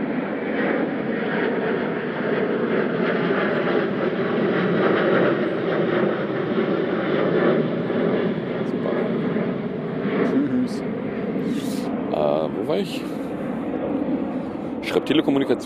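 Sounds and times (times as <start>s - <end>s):
departing airplane climbing overhead after takeoff with jet-engine roar: 0.0s - 15.6s.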